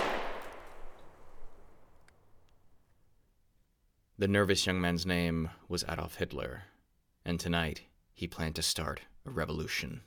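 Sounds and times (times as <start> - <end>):
gunshot fired in a bar: 0.0 - 2.0
speech: 4.2 - 10.0.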